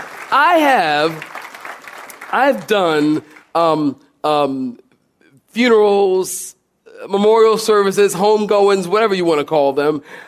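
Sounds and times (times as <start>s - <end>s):
audience clapping: 0.0s - 3.9s
speech: 0.3s - 1.3s, 2.3s - 4.8s, 5.5s - 10.2s.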